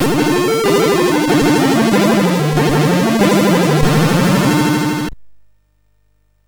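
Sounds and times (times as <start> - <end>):
MOS6581R3 SID chip game music: 0.0 - 5.1.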